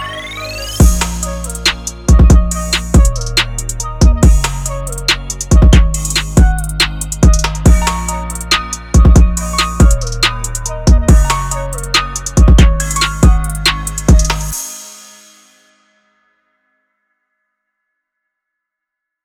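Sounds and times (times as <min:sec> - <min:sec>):
drum kit: 0:00.8 - 0:15.6.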